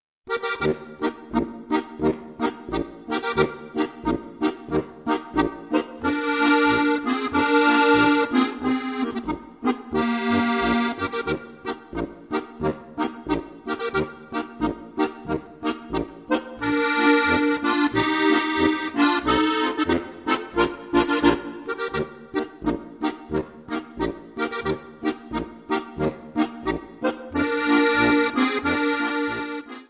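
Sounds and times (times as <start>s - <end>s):
polka music: 0.3s - 29.8s.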